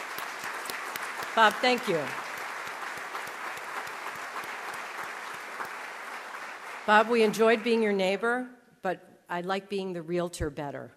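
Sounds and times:
audience applause: 0.0 - 7.8
speech: 1.4 - 2.2, 6.9 - 10.9.

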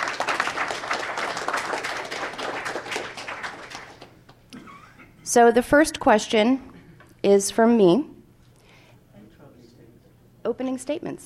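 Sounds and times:
audience applause: 0.0 - 4.2
speech: 5.3 - 8.1, 10.6 - 11.2.

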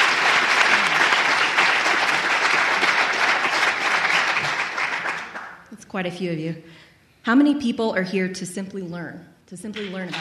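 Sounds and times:
audience clapping hands: 0.0 - 5.7, 9.7 - 10.2
speech: 6.0 - 10.2.

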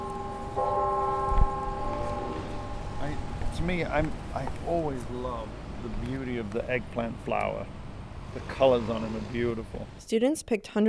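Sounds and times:
university clock tower chimes: 0.0 - 3.7
outdoor noise: 0.0 - 10.8
speech: 3.6 - 7.8, 8.4 - 10.8.

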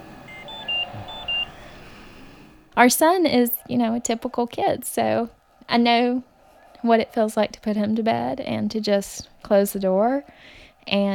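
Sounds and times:
ventilator alarm beeping: 0.0 - 2.6
speech: 2.8 - 11.1.

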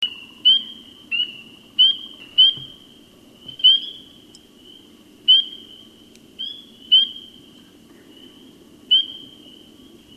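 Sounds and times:
spring peeper calling: 0.0 - 2.9, 3.5 - 7.4, 8.9 - 9.3.

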